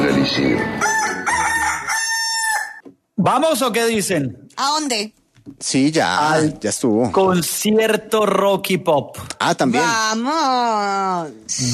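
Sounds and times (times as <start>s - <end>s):
speech: 0.3s - 0.9s, 3.2s - 11.7s
rooster crowing: 0.6s - 2.8s.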